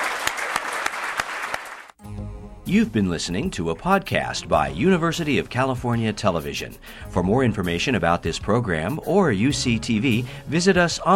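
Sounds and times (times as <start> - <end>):
audience applause: 0.0 - 2.0
speech: 2.7 - 11.1.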